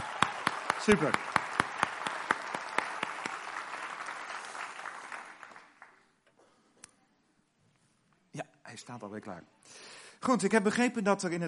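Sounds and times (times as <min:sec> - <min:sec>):
audience applause: 0:00.0 - 0:06.1
speech: 0:00.8 - 0:01.3, 0:08.9 - 0:11.4.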